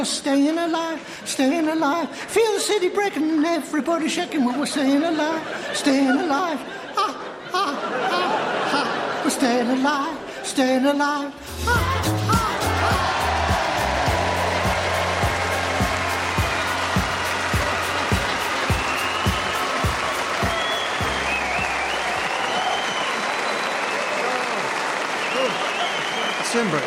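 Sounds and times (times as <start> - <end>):
speech: 0.0 - 12.2, 26.6 - 26.8
laughter: 4.2 - 10.9, 11.7 - 26.8
audience clapping along to song: 12.3 - 26.8.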